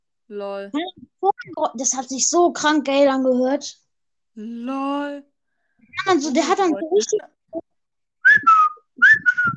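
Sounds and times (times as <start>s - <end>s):
speech: 0.3s - 3.8s, 4.4s - 5.3s, 6.0s - 7.3s
person whistling a bird call: 8.2s - 9.5s.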